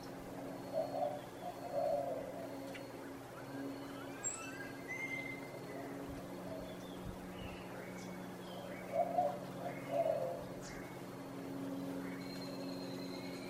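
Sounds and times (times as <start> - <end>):
birds chirping in the early morning: 0.0 - 13.4
doves cooing over the Placencia Sidewalk in Belize: 0.0 - 13.4
steady low hum: 0.0 - 13.4.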